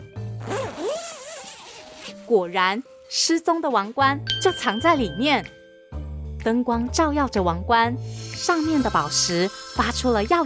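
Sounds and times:
zipper being pulled open on plush bear: 0.3 - 2.3
speech: 2.3 - 5.6, 6.4 - 10.4.

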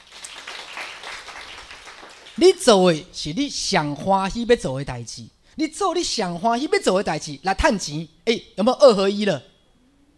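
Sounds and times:
audience clapping: 0.0 - 2.5
speech: 2.4 - 9.5.

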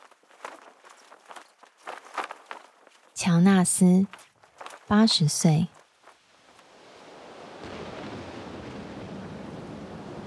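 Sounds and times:
speech: 3.2 - 4.2, 4.9 - 5.8
stormy wind: 5.3 - 10.2
sea waves: 6.1 - 10.2.

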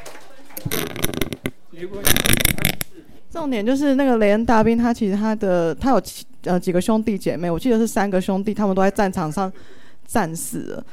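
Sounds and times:
audience applause: 0.0 - 0.6
speech: 1.8 - 10.9.

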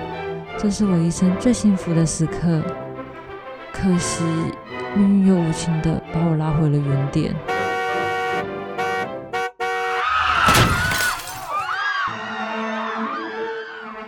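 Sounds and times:
speech: 0.6 - 2.8, 3.8 - 7.5
car horn: 7.5 - 10.8
people screaming: 10.0 - 14.0
out-of-control car crashing: 10.1 - 11.8.

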